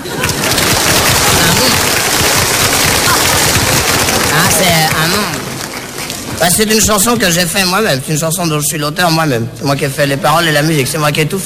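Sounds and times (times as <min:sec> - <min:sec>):
audience applause: 0:00.0 - 0:07.2
speech: 0:06.4 - 0:11.4.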